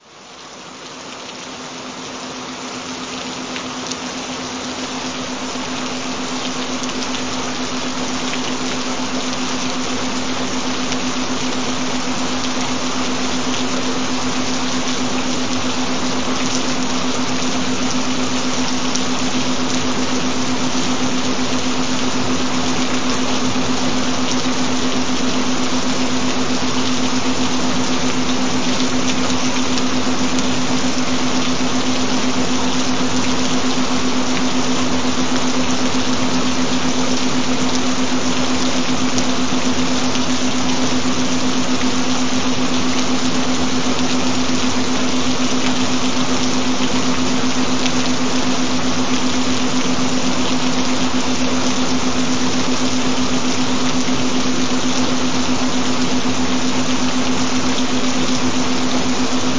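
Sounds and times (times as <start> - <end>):
gentle rain: 0.0 - 59.5.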